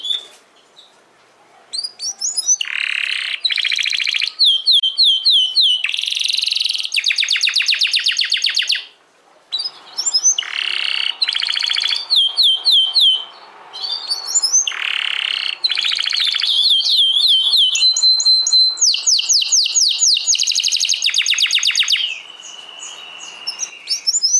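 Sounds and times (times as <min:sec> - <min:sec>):
domestic canary song: 0:00.0 - 0:01.0, 0:01.6 - 0:24.3.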